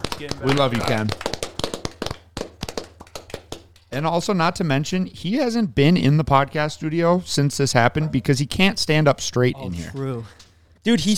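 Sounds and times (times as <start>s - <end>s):
round of applause: 0.0s - 3.9s
speech: 0.2s - 1.3s, 3.9s - 11.1s.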